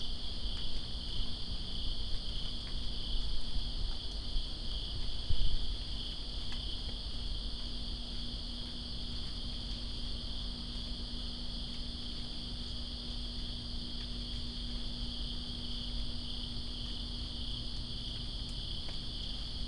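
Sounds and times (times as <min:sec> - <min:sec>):
cricket chorus: 0:00.0 - 0:19.6
gusty rain: 0:00.0 - 0:19.6.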